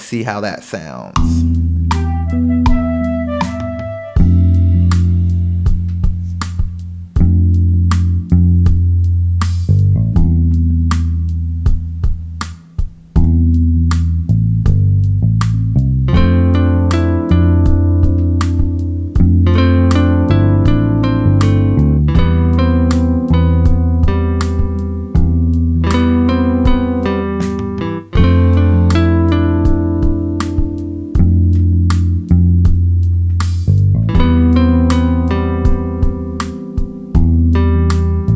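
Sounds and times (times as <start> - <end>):
speech: 0.1 - 1.6
steady punchy beat: 1.0 - 38.3
guitar line of bright plucked notes: 1.2 - 6.3, 16.1 - 38.3.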